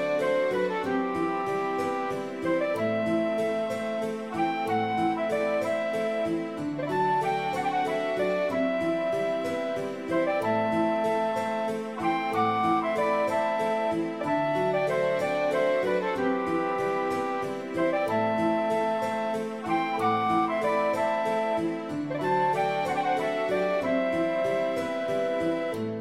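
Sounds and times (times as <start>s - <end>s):
Dorian mode melody: 0.0s - 25.9s.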